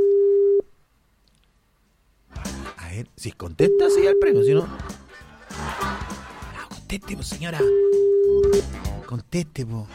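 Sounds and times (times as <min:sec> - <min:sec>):
telephone ringing tone while calling a number: 0:00.0 - 0:00.7, 0:03.6 - 0:04.6, 0:07.6 - 0:08.6
speech: 0:03.1 - 0:05.6, 0:06.9 - 0:09.9
laughter: 0:04.6 - 0:07.2.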